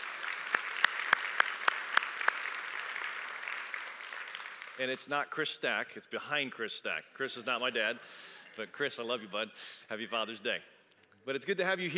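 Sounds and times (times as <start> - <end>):
audience applause: 0.0 - 4.8
speech: 4.8 - 11.9.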